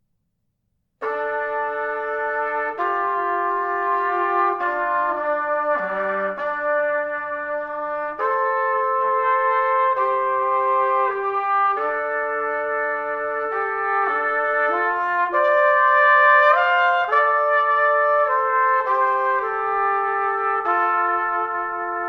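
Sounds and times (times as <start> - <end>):
trumpet duet in pentatonic mode in B minor: 1.0 - 22.0.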